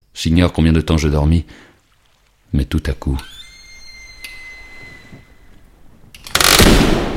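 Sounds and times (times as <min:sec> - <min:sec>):
speech: 0:00.2 - 0:01.7, 0:02.5 - 0:03.4
door closing: 0:03.2 - 0:06.6.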